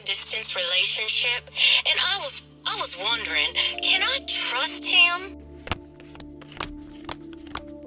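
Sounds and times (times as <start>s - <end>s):
speech: 0.3s - 5.4s
cards being shuffled for a fortune-telling reading: 5.5s - 7.8s.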